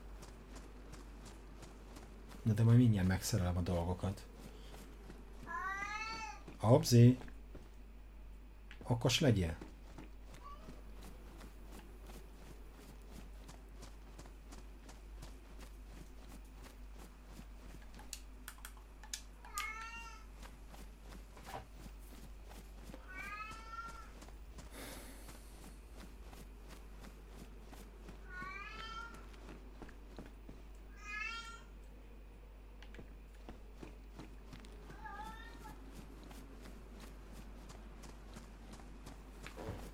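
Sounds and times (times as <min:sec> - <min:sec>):
low hum: 0:00.0 - 0:39.9
speech: 0:02.4 - 0:04.3, 0:06.6 - 0:07.3, 0:08.9 - 0:09.7
cat meowing from outside the room: 0:05.5 - 0:06.4, 0:10.4 - 0:10.8, 0:19.5 - 0:20.3, 0:23.0 - 0:24.1, 0:28.2 - 0:29.2, 0:30.9 - 0:31.7, 0:34.9 - 0:35.8.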